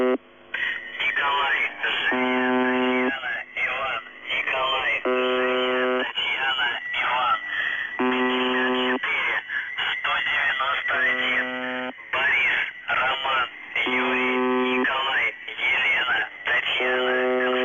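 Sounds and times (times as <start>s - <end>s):
numbers station buzzer: 0.0s - 17.6s.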